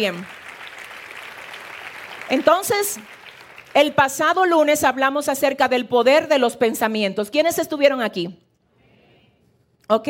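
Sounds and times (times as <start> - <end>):
speech: 0.0 - 0.4, 2.3 - 8.4, 9.9 - 10.0
audience applause: 0.0 - 4.1.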